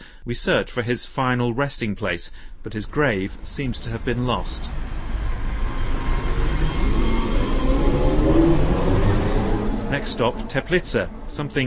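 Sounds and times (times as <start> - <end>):
speech: 0.2 - 4.9, 9.9 - 11.6
trolley buses passing in North Bohemia: 2.6 - 11.6.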